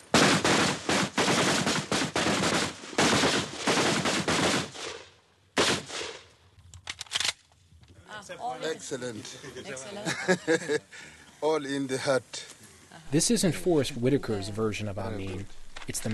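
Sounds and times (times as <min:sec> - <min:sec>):
rifle gunfire: 0:00.0 - 0:06.3
speech: 0:08.3 - 0:12.5, 0:13.1 - 0:16.1
laughter: 0:09.0 - 0:11.6.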